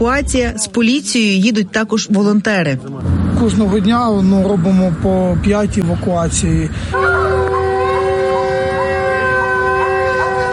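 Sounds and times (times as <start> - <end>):
speech: 0.0 - 7.2
continuous air raid siren: 6.8 - 10.5.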